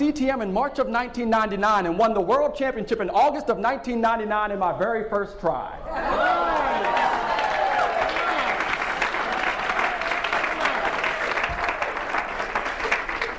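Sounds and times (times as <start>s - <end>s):
speech: 0.1s - 6.5s
voices cheering: 5.9s - 13.3s
audience applause: 6.1s - 13.3s.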